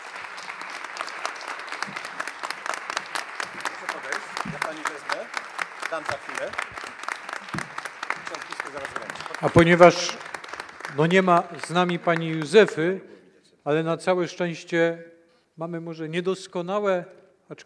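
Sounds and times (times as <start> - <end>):
audience applause: 0.0 - 13.0
speech: 5.9 - 7.2, 8.3 - 10.3, 10.9 - 17.6.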